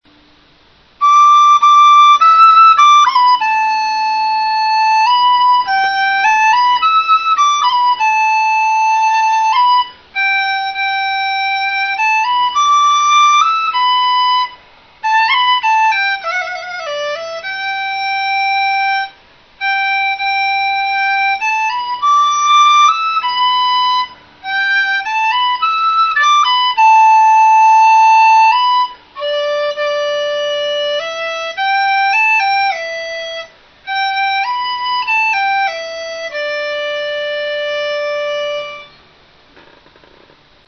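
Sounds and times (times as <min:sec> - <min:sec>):
dizi bamboo flute: 0:00.4 - 0:39.8.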